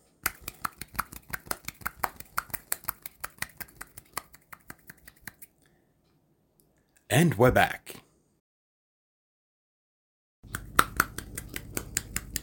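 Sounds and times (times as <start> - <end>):
one hand clapping or snapping: 0.2 - 5.5, 10.5 - 12.4
speech: 7.1 - 8.0.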